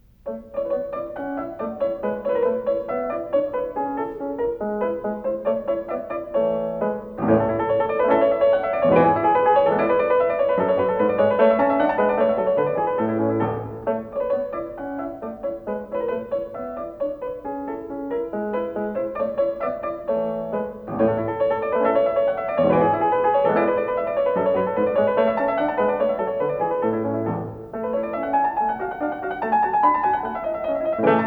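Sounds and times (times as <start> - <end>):
piano sonata: 0.0 - 31.2.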